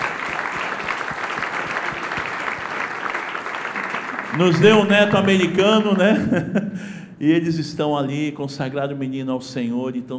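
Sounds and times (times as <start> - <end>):
audience applause: 0.0 - 5.9
laughter: 3.8 - 6.9
speech: 4.4 - 10.1.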